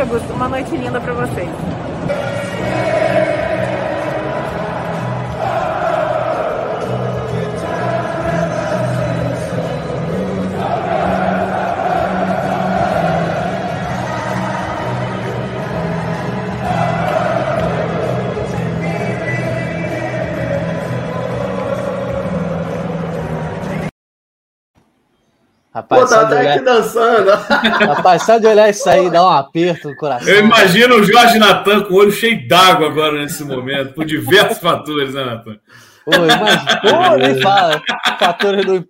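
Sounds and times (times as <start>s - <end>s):
speech: 0.0s - 3.0s, 25.9s - 38.8s
football crowd cheering and chanting at final whistle: 2.0s - 23.9s, 30.2s - 31.8s, 33.3s - 34.6s, 36.1s - 38.8s
laughter: 27.1s - 31.4s, 33.1s - 34.8s, 36.0s - 38.8s.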